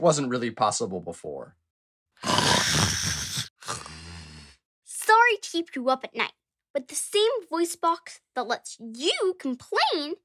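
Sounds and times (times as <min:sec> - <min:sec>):
speech: 0:00.0 - 0:01.6, 0:05.4 - 0:10.2
snoring: 0:02.2 - 0:04.6.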